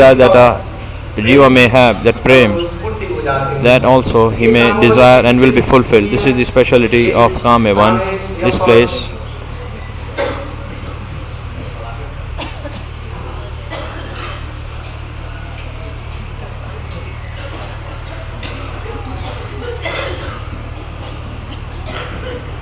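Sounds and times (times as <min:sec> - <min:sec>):
speech: 0:00.0 - 0:09.1
man coughing: 0:10.2 - 0:10.6, 0:13.7 - 0:14.5, 0:18.4 - 0:20.5, 0:21.1 - 0:22.5
laughter: 0:10.4 - 0:13.4, 0:17.5 - 0:22.6.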